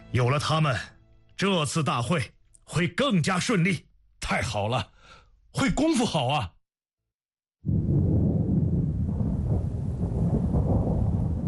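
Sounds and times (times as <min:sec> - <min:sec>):
speech: 0:00.1 - 0:06.6
distant rolling thunder: 0:07.6 - 0:11.4.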